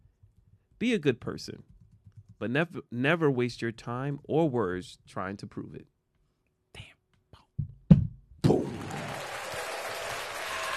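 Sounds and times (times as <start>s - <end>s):
speech: 0.8s - 1.7s, 2.4s - 5.9s
crowd cheering and applause: 8.5s - 10.7s.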